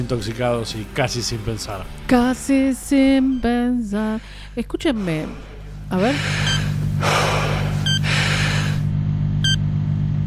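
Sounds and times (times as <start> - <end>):
speech: 0.0 - 7.4
low hum: 2.0 - 10.2
person gasping: 4.2 - 8.9.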